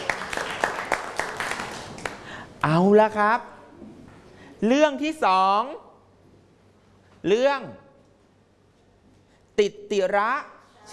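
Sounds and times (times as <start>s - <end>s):
sparse hand claps from a group in a class session: 0.0s - 2.3s
speech: 2.6s - 3.5s, 4.6s - 5.8s, 7.2s - 7.8s, 9.6s - 10.9s.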